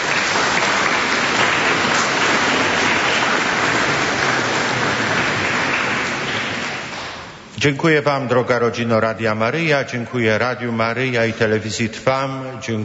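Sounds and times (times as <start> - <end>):
audience applause: 0.0 - 7.4
speech: 7.6 - 12.8.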